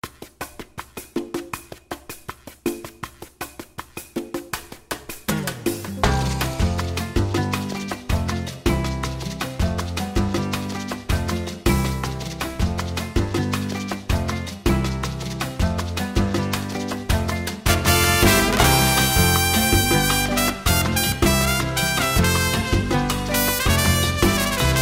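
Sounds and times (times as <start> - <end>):
gym workout music: 4.3 - 24.8.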